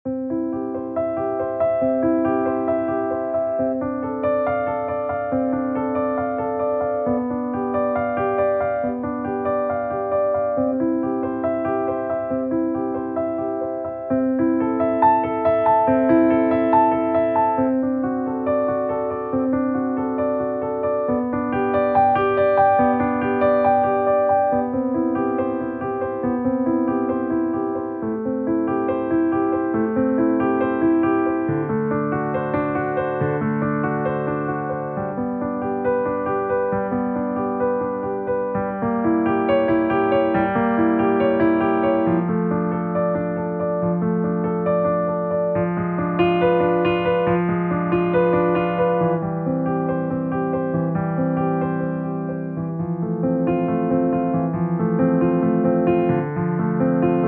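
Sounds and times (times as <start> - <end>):
piano prelude in C major: 0.0 - 57.2.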